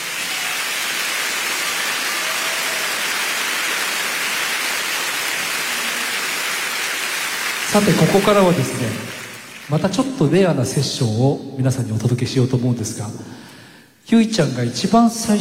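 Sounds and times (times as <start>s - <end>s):
audience applause: 0.0s - 10.2s
speech: 7.7s - 13.4s, 14.1s - 15.3s.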